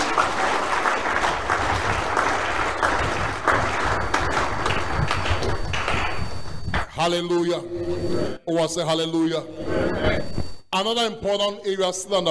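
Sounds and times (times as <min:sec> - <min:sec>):
audience clapping: 0:00.0 - 0:06.9
speech: 0:07.1 - 0:12.2.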